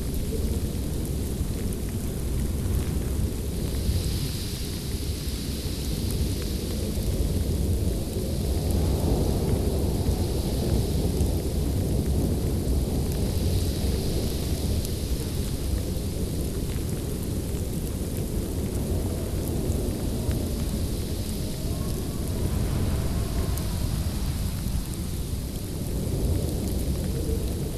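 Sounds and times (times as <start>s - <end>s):
snow blizzard wind roaring: 0.1s - 27.7s
faint whistling gusts: 20.3s - 25.1s.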